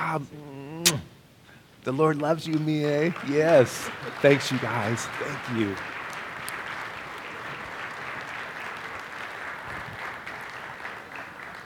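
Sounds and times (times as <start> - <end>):
speech: 0.1 - 1.1, 1.8 - 6.0
audience applause: 2.0 - 11.6
laughter: 2.4 - 9.6.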